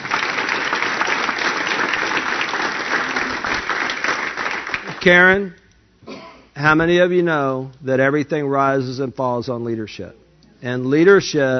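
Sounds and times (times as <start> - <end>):
audience applause: 0.0 - 5.1
speech: 5.0 - 5.6, 6.6 - 11.5.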